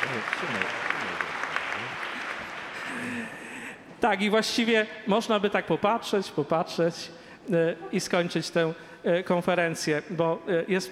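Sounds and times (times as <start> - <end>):
audience applause: 0.0 - 3.6
speech: 0.1 - 0.9, 4.0 - 10.9.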